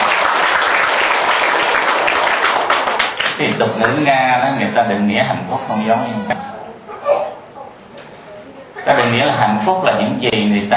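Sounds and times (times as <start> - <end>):
audience applause greeting three guests: 0.0 - 4.7
speech: 3.4 - 6.5, 8.9 - 10.7.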